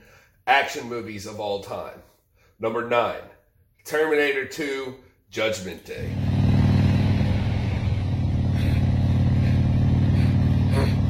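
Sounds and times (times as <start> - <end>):
speech: 0.5 - 6.3
motorcycle engine running: 6.0 - 11.0.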